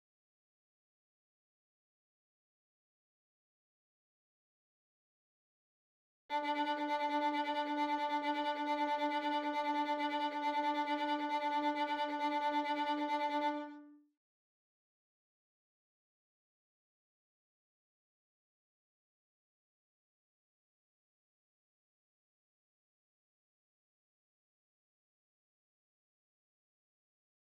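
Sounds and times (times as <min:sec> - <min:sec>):
violin: 0:06.3 - 0:14.1.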